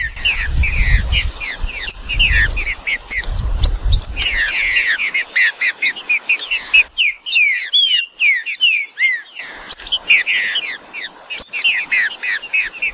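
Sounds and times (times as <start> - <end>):
green-winged saltator singing whistled notes: 0.0 - 12.9.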